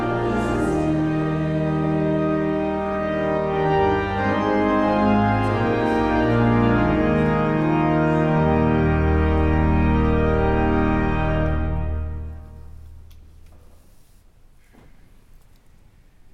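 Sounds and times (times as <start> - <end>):
hymn: 0.0 - 12.7.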